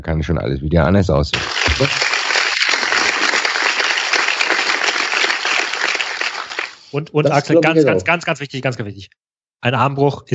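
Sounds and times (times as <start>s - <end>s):
speech: 0.0s - 2.2s, 6.9s - 10.3s
crowd applause: 1.4s - 7.8s.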